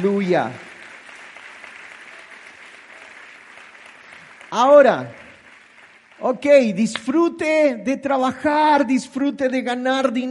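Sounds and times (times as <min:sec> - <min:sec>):
speech: 0:00.0 - 0:00.6, 0:04.5 - 0:05.2, 0:06.2 - 0:10.2
audience applauding: 0:00.0 - 0:07.2.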